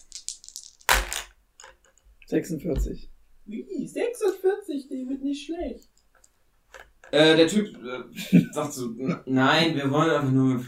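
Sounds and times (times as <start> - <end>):
dice being rolled: 0.0 - 2.0, 5.8 - 7.2
speech: 2.3 - 5.9, 7.1 - 10.6
laughter: 8.0 - 9.3.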